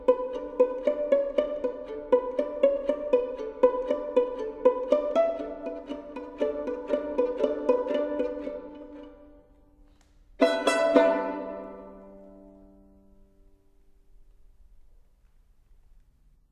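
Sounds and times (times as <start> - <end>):
violin duet played pizzicato: 0.0 - 13.0.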